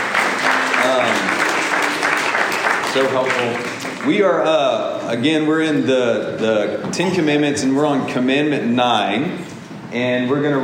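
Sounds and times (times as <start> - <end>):
audience applause: 0.0 - 4.4
speech: 2.9 - 10.6.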